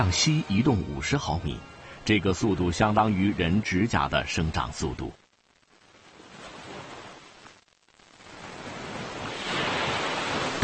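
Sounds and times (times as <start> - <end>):
speech: 0.0 - 5.2
ocean waves crashing against rocks: 8.4 - 10.6.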